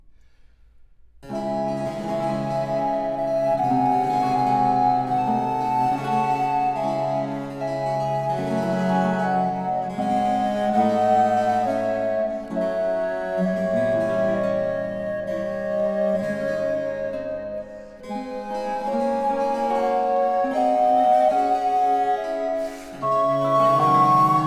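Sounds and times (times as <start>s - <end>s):
two recorders playing a slow sonata movement in D minor: 1.2s - 24.4s.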